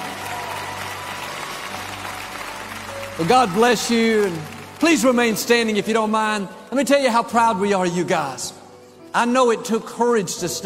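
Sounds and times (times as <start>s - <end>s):
church congregation applauding: 0.0s - 6.8s
speech: 3.2s - 10.6s.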